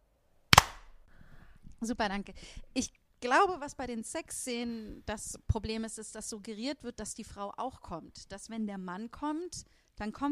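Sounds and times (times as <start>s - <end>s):
faint low noise: 0.0s - 10.3s
loud sharp hand clap for audio sync: 0.6s - 0.9s
speech: 1.8s - 10.3s.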